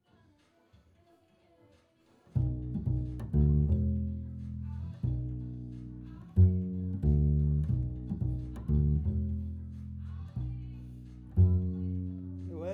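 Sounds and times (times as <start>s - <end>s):
bass recorded through a microphone: 2.4s - 12.7s.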